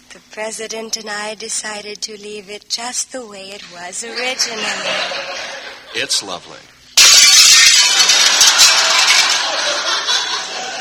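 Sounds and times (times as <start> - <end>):
speech: 0.4 - 6.8
laughter: 4.0 - 6.2, 8.1 - 10.7
football crashing through glass French windows: 7.0 - 9.6.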